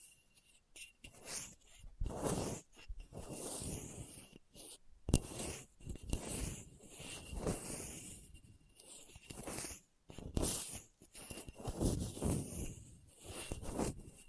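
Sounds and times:
scratching on a hard bumpy surface: 0.0s - 14.2s.

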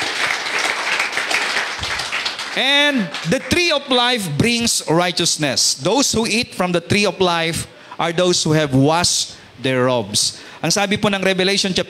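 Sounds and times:
church congregation clapping during a sermon: 0.0s - 4.0s
speech: 2.6s - 11.8s.

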